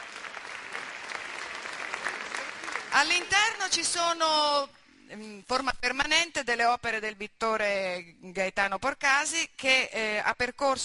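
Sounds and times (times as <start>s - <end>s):
audience clapping: 0.0s - 3.9s
speech: 3.0s - 10.8s.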